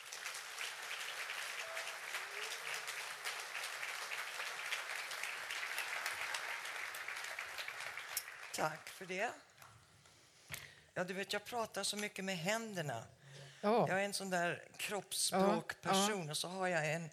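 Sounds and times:
audience applause: 0:00.0 - 0:09.1
speech: 0:08.6 - 0:09.5, 0:11.0 - 0:17.1.

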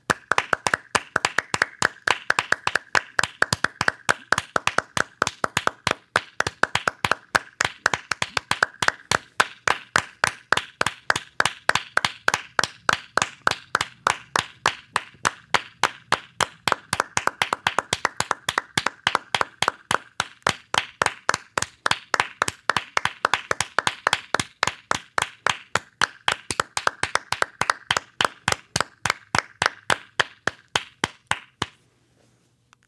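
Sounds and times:
people clapping along: 0:00.0 - 0:31.8.

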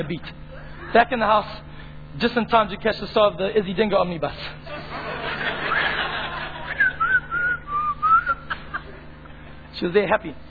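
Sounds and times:
speech: 0:00.0 - 0:04.8, 0:09.8 - 0:10.4
faint steady hum: 0:00.0 - 0:10.4
laughter: 0:04.6 - 0:09.7
person whistling a tune: 0:06.8 - 0:08.4.

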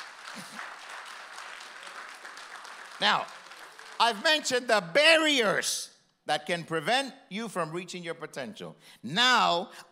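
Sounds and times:
crowd applauding: 0:00.0 - 0:04.7
speech: 0:03.0 - 0:03.4, 0:04.0 - 0:09.8.

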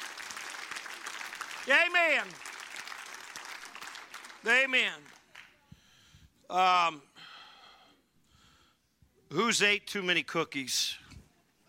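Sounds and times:
audience applauding loudly: 0:00.0 - 0:05.5
speech: 0:01.6 - 0:02.5, 0:04.4 - 0:05.1, 0:06.5 - 0:07.1, 0:09.3 - 0:11.1.

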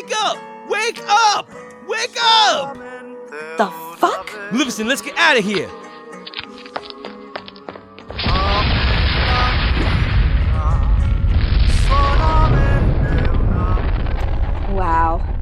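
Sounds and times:
speech: 0:00.1 - 0:03.8, 0:04.5 - 0:05.8
building exploding: 0:08.1 - 0:15.4.

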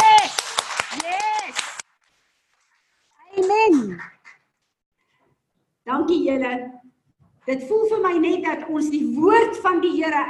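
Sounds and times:
voices cheering and calling out: 0:00.0 - 0:01.8
crowd clapping: 0:00.0 - 0:02.2
speech: 0:06.1 - 0:10.2.

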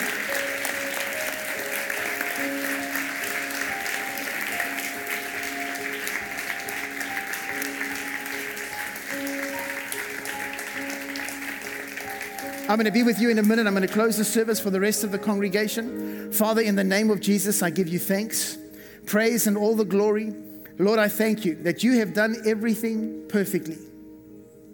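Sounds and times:
audience applause: 0:00.0 - 0:13.9
speech: 0:12.7 - 0:23.9.

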